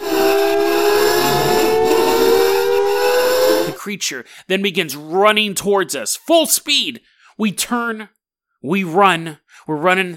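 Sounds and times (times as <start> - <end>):
grating metallic hiss: 0.0 - 3.8
imitated wail like air raid siren: 0.0 - 3.8
speech: 3.9 - 10.1.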